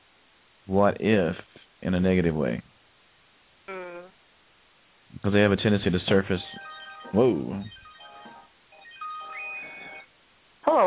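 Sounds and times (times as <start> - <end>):
speech: 0.7 - 2.7, 5.1 - 7.8
phone alarm going off: 6.4 - 10.1.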